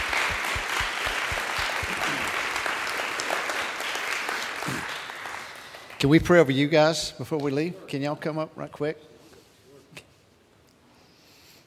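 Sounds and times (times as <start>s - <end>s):
audience clapping: 0.0s - 6.6s
speech: 6.0s - 9.1s.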